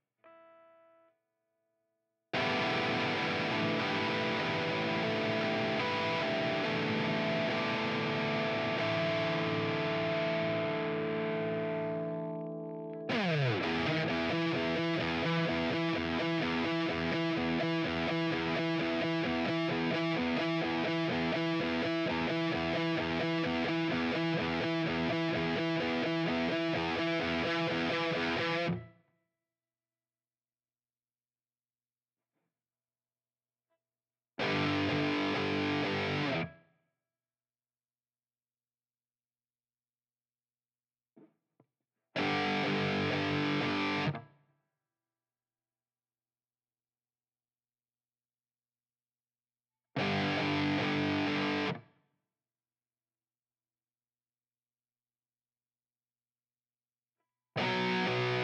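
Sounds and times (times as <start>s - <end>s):
guitar: 0.0s - 1.1s, 2.3s - 29.0s, 34.4s - 36.6s, 42.2s - 44.4s, 50.0s - 51.9s, 57.6s - 58.4s.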